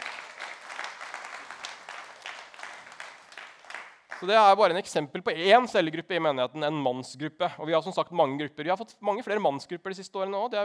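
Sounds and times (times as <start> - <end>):
audience applause: 0.0 - 4.3
speech: 4.2 - 10.6.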